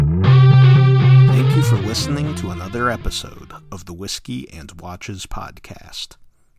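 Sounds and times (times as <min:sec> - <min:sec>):
podcast jingle of distorted effects-heavy guitar-like tones: 0:00.2 - 0:03.7
speech: 0:02.0 - 0:06.2.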